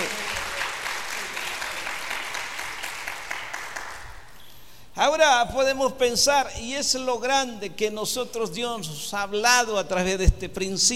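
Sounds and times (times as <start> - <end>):
audience applause: 0.0 - 4.3
speech: 5.1 - 10.9.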